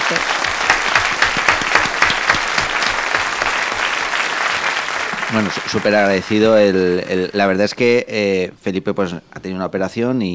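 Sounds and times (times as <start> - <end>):
audience applause: 0.0 - 6.7
speech: 0.1 - 0.4, 5.3 - 10.3.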